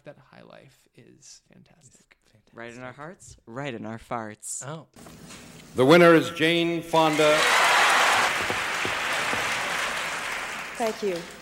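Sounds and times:
speech: 0:00.0 - 0:07.7, 0:10.8 - 0:11.3
audience applause at awards ceremony: 0:07.0 - 0:11.3.

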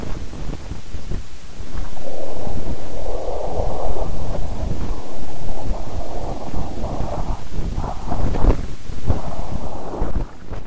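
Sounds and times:
low rumble with whooshing in data audification: 0:00.0 - 0:10.6.

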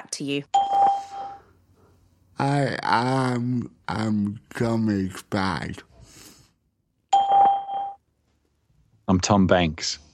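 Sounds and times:
speech: 0:00.1 - 0:01.0, 0:02.4 - 0:05.9, 0:09.1 - 0:10.0
recording prompt beep: 0:00.5 - 0:01.4, 0:07.1 - 0:08.0.

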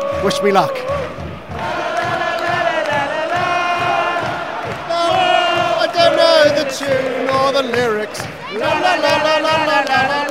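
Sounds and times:
football crowd chanting and shouting: 0:00.0 - 0:10.3
football crowd rhythmic clapping: 0:00.0 - 0:10.3
speech: 0:00.2 - 0:01.0, 0:06.7 - 0:10.3.

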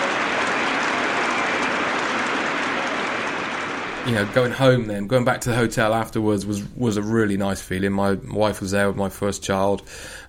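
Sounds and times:
standing crowd applauding at cricket match: 0:00.0 - 0:04.9
speech: 0:04.0 - 0:10.2.

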